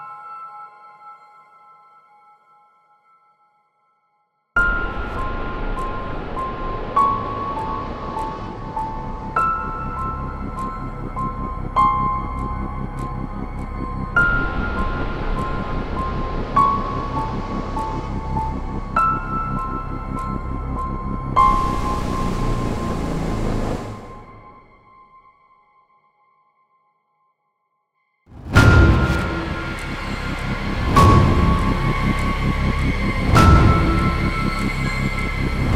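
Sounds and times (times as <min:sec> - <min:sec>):
scary sound: 0:04.6 - 0:24.9, 0:28.3 - 0:35.7.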